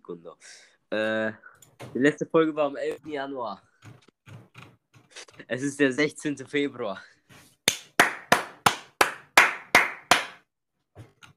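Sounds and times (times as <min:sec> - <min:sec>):
speech: 0:00.1 - 0:03.7, 0:05.4 - 0:07.2
applause: 0:07.7 - 0:10.4.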